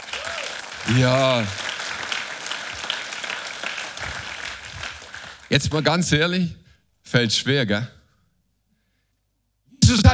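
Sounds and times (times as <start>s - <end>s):
audience applause: 0.0s - 5.6s
speech: 0.9s - 1.6s, 5.5s - 8.0s, 10.0s - 10.1s.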